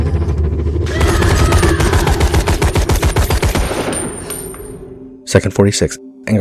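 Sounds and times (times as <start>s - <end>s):
low rumbling background: 0.0s - 5.3s
rifle fire in film scene: 0.9s - 4.8s
speech: 5.3s - 6.4s.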